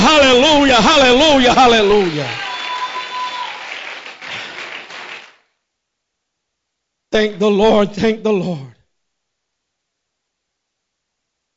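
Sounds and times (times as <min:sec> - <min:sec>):
speech: 0:00.4 - 0:02.5, 0:07.1 - 0:08.7
audience clapping hands: 0:01.4 - 0:05.5.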